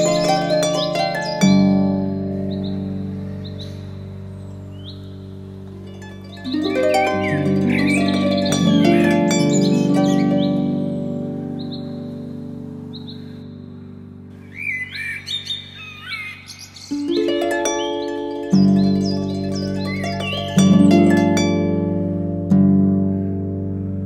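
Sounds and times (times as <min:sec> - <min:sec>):
classic harp playing in G major, C minor and D minor: 0:00.0 - 0:15.3, 0:16.5 - 0:24.0.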